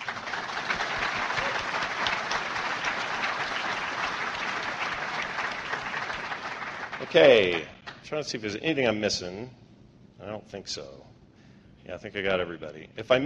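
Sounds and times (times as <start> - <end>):
audience applause: 0.0 - 8.0
speech: 7.1 - 9.6, 10.2 - 11.1, 11.8 - 13.2.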